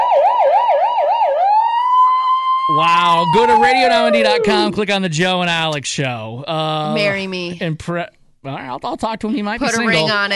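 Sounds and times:
person imitating a police siren: 1.1s - 5.1s
speech: 2.7s - 10.3s.

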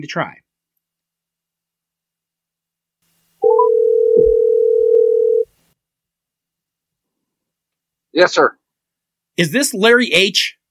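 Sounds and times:
speech: 0.0s - 0.4s, 8.2s - 8.6s, 9.4s - 10.6s
telephone dial tone: 3.4s - 5.5s.

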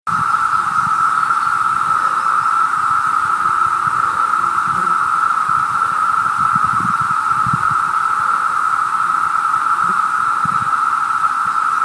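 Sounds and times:
amplified periodical cicadas of brood II: 0.1s - 11.8s.

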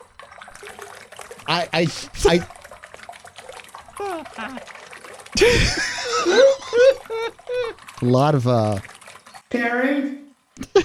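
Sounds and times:
bath water trickling: 0.0s - 10.8s
speech: 1.5s - 2.6s, 4.2s - 4.8s, 5.4s - 8.9s, 9.5s - 10.2s
laughter: 5.4s - 7.8s, 10.6s - 10.8s.

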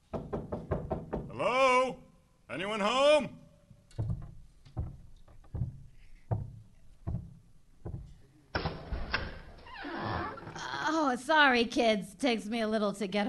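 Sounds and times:
knocking on front door: 0.0s - 1.4s, 4.0s - 8.2s
speech: 1.4s - 3.4s, 11.1s - 13.2s.

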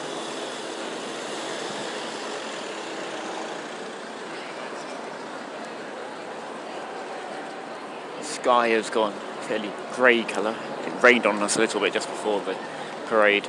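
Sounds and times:
van turning round in the road: 0.0s - 4.7s
outdoor noise: 0.0s - 13.4s
speech: 8.4s - 13.4s.

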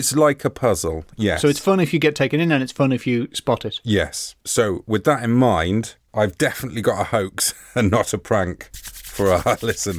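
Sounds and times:
speech: 0.0s - 9.9s
hands rubbing together: 8.7s - 9.9s.

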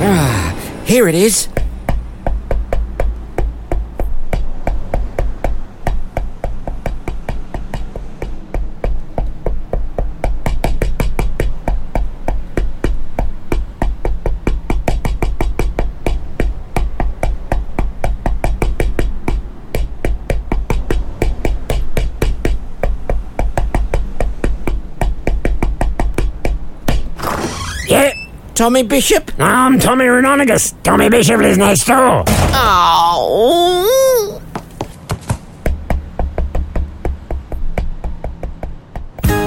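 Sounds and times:
speech: 0.1s - 1.6s, 28.6s - 34.0s
knocking on a door: 1.5s - 27.2s, 34.6s - 39.3s.

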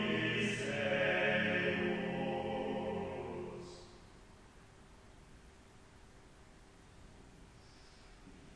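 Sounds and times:
choir singing: 0.0s - 4.0s.

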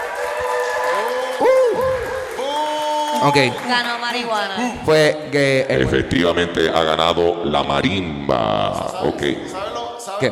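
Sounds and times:
audience applause: 0.0s - 4.9s
speech: 3.2s - 10.3s.

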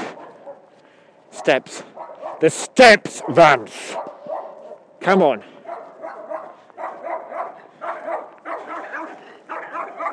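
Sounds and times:
dog barking: 0.0s - 0.7s, 1.4s - 2.5s, 3.1s - 4.9s, 5.6s - 10.1s
speech: 1.5s - 4.2s, 5.0s - 5.5s.

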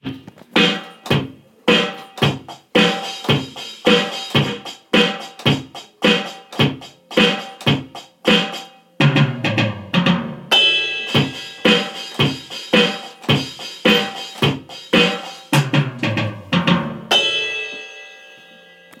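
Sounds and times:
drums in 4/4 time: 0.0s - 17.5s.

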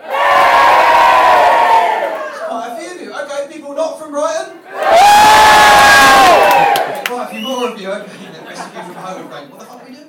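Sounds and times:
crowd cheering: 0.0s - 2.6s, 4.7s - 7.8s
laughter: 7.8s - 9.6s.

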